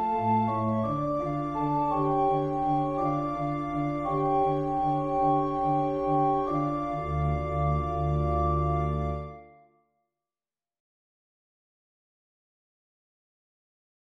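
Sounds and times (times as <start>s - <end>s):
organ playing a Lenten Kyrie: 0.0s - 9.6s.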